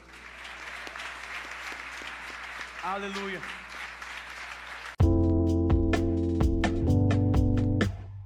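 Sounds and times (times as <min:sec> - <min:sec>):
crowd clapping: 0:00.0 - 0:05.0
sharper rhythmic claps: 0:00.0 - 0:08.0
speech: 0:02.8 - 0:03.6.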